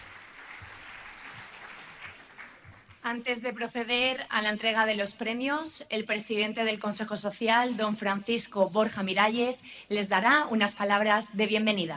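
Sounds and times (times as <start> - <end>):
applause filling an assembly hall at an awards ceremony after a flamenco performance: 0.0 - 3.0
speech: 3.0 - 11.9.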